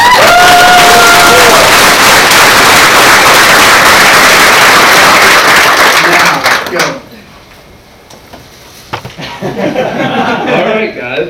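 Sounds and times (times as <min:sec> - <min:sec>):
cheers and whoops: 0:00.0 - 0:02.4
audience applause: 0:00.0 - 0:07.0
laughter: 0:09.2 - 0:11.0.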